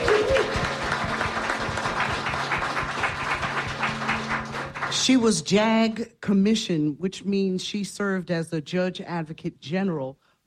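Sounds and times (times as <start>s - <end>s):
audience applause: 0.0s - 5.2s
speech: 5.0s - 10.2s.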